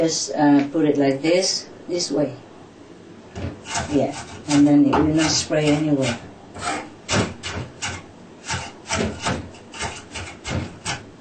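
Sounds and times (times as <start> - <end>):
speech: 0.0 - 2.5, 3.4 - 6.8
knife chopping vegetables: 3.4 - 11.1.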